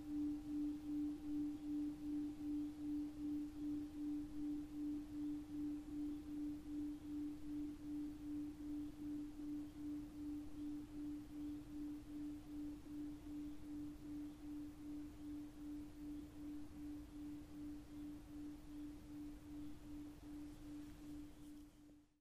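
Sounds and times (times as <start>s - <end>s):
planet singing bowl: 0.0s - 21.6s.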